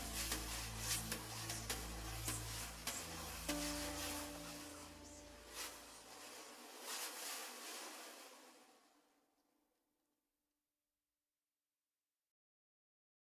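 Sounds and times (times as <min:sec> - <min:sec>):
brush transition: 0:00.0 - 0:08.7.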